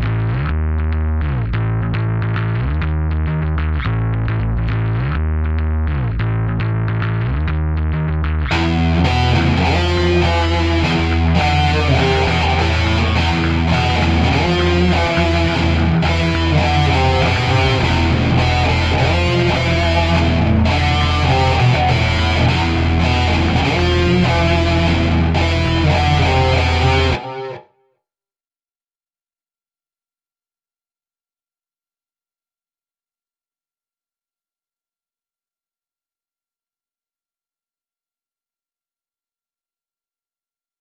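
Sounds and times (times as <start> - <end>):
bass guitar: 0.0 - 27.6
lead guitar: 7.2 - 27.7.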